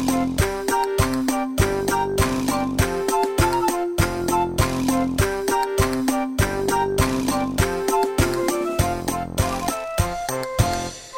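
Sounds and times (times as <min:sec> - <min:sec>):
clap: 0:00.0 - 0:11.0.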